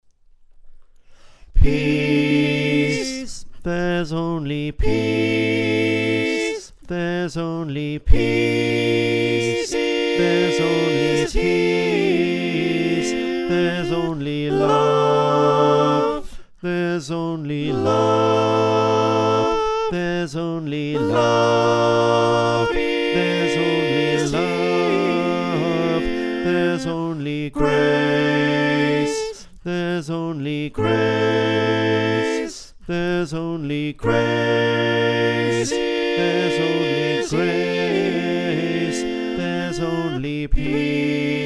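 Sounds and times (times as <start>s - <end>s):
soprano alto tenor bass choir singing: 1.6s - 41.4s.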